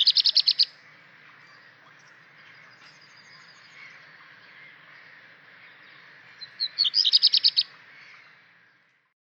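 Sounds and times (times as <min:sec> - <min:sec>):
black redstart bird call: 0:00.0 - 0:08.8.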